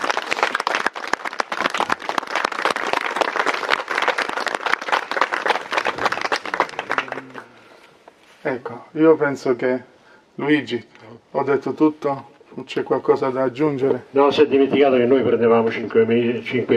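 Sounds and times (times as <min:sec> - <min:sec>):
audience applause: 0:00.0 - 0:07.6
speech: 0:08.5 - 0:16.7.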